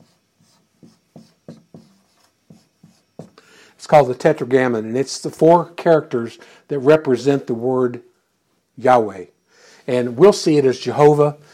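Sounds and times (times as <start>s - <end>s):
lecturer writing characters on a board: 0.0s - 3.4s
speech: 3.8s - 8.1s, 8.8s - 11.5s.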